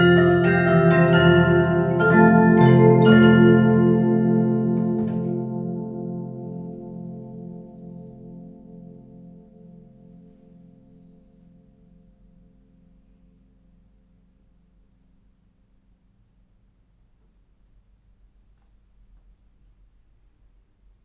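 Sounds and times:
music box with metal disc, Swiss, 1902: 0:00.0 - 0:08.4.

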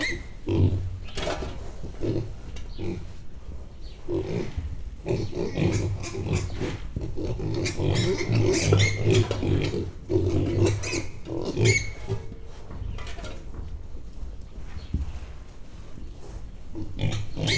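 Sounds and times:
ten-week-old Mangalica piglets grunting: 0:00.0 - 0:03.2, 0:04.0 - 0:12.5, 0:16.7 - 0:17.5.

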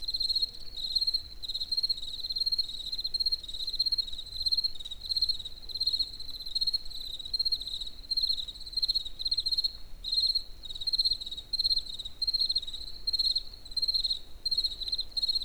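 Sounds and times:
crickets chirping in nature: 0:00.2 - 0:15.4.

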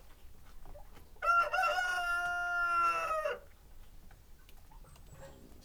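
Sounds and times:
rooster crowing in the morning in a farmyard: 0:01.2 - 0:03.5.

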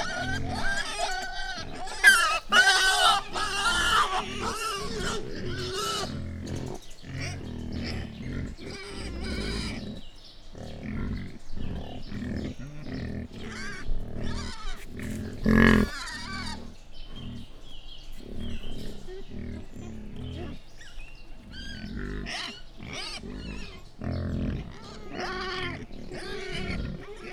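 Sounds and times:
wild boar at a zoo: 0:00.0 - 0:27.3.

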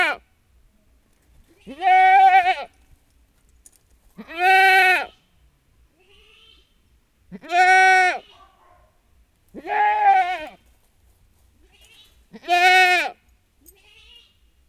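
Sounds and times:
domestic goat kid bleating for its mother in a farmyard: 0:01.6 - 0:02.7, 0:04.2 - 0:05.2, 0:07.3 - 0:08.4, 0:09.6 - 0:10.6, 0:11.8 - 0:14.4.

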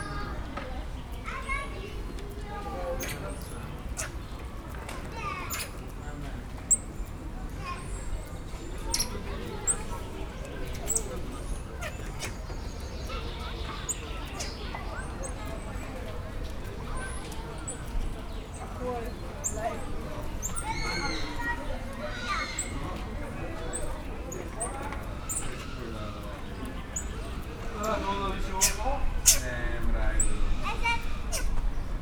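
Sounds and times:
people whispering in Pécs zoo: 0:00.0 - 0:32.0
squirrel monkey in Pécs zoo: 0:02.8 - 0:04.4, 0:05.2 - 0:05.9, 0:06.6 - 0:07.0, 0:08.7 - 0:15.9, 0:16.9 - 0:31.8.

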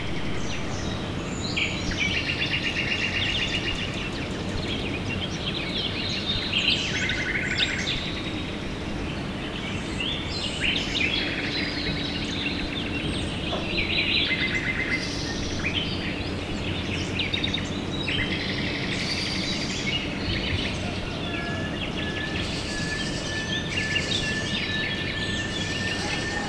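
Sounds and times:
low rumbling background noise: 0:00.0 - 0:02.2
birds singing chorus: 0:00.0 - 0:26.4.

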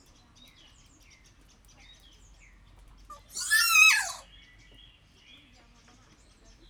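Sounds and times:
captive kea giving a harsh screech in a zoo at Jászberény: 0:03.1 - 0:04.2.

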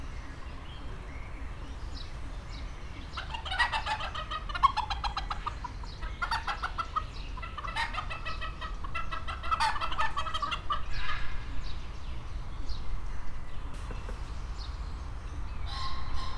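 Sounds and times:
pheasant: 0:00.1 - 0:16.3
hen: 0:02.9 - 0:11.4
rooster: 0:03.2 - 0:11.2.

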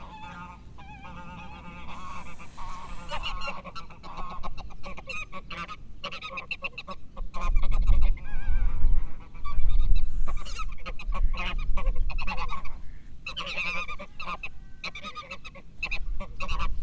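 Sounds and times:
windy weather in Hortobagy National Park: 0:00.0 - 0:16.8
Hungarian curly-feathered goose gander hissing in windy weather in Hortobagy National Park: 0:01.6 - 0:03.7.

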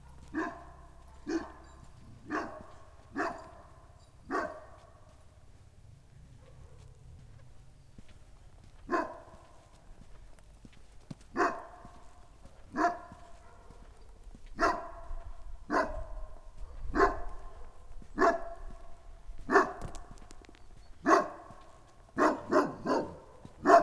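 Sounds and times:
St. Bernard barking deeply in a farmyard in Nagykőrös, Hungary: 0:00.0 - 0:05.1, 0:08.8 - 0:09.6, 0:11.3 - 0:23.8.

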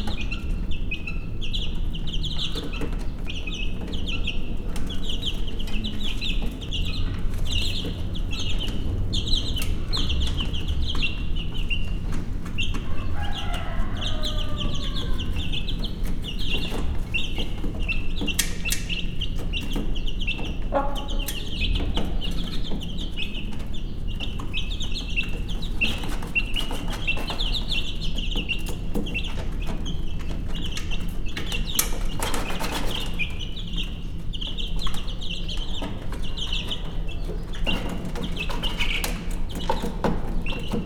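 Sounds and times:
broody yellow-feathered Hungarian hen in Hortobágy National Park: 0:00.0 - 0:40.8
one-week-old chicks in Hortobágy National Park: 0:00.0 - 0:40.8
steppe wind in Hortobágy National Park: 0:00.0 - 0:40.8.

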